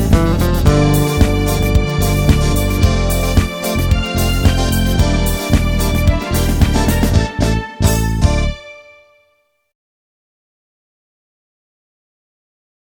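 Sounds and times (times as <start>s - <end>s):
Latin instrumental music: 0.0s - 9.1s.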